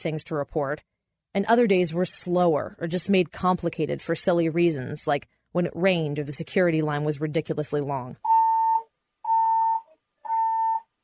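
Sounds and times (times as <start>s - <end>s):
speech: 0.0s - 8.3s
fire alarm going off in D.C. courthouse: 8.2s - 11.0s.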